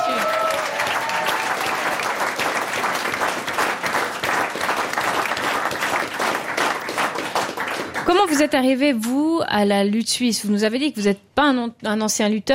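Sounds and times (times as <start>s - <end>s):
audience applause: 0.0s - 8.5s
speech: 8.1s - 12.5s.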